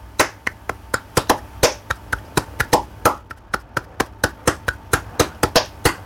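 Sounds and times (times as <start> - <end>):
flamenco palmas hand clapping, bulerías rhythm: 0.0 - 6.0.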